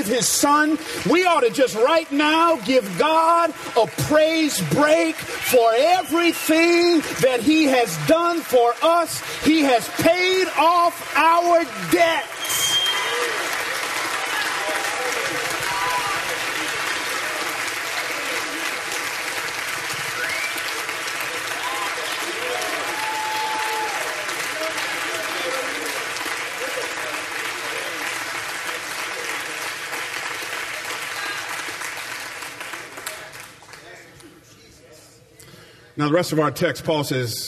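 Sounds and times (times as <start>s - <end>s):
speech: 0.0s - 12.8s, 36.0s - 37.4s
audience clapping: 0.0s - 34.4s.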